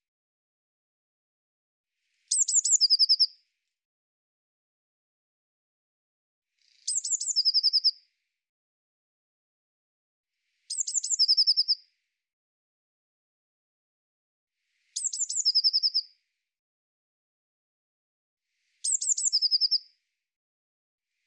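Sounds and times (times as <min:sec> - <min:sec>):
Eurasian blue tit phrase of piercing high notes and rapid trill: 0:02.3 - 0:03.3, 0:06.8 - 0:07.9, 0:10.7 - 0:11.8, 0:15.0 - 0:16.0, 0:18.8 - 0:19.8.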